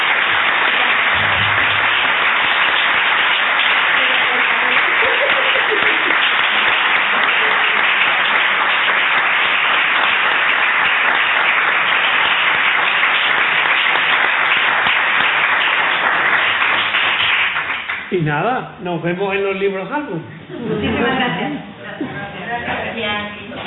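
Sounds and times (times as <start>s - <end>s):
audience applause: 0.0s - 18.2s
laughter: 4.6s - 8.0s, 20.4s - 22.4s
speech: 18.3s - 22.1s.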